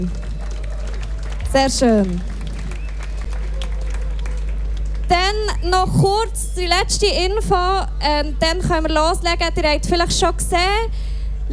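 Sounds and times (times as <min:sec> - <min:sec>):
speech: 0:00.0 - 0:00.3, 0:01.5 - 0:02.3, 0:05.1 - 0:11.5
audience applause at a live concert evening in Thun: 0:00.0 - 0:05.8.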